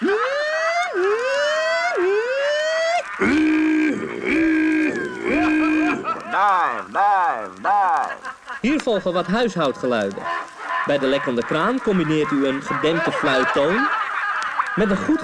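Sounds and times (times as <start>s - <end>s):
laughter: 0.0s - 15.2s
voice imitating a submarine diving: 3.1s - 8.3s
speech: 8.6s - 14.0s, 14.8s - 15.2s.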